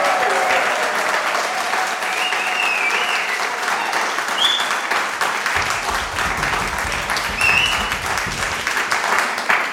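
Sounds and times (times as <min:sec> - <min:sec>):
whoops and cheers: 0:00.0 - 0:04.7
audience applause from about 400 people: 0:00.0 - 0:09.7.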